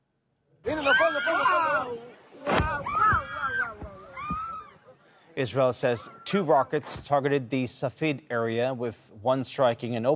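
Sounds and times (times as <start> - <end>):
beachgoers near Nahariya Israel shouting in alarm at a Hezbollah rocket: 0.6 - 4.9
speech: 5.4 - 10.1.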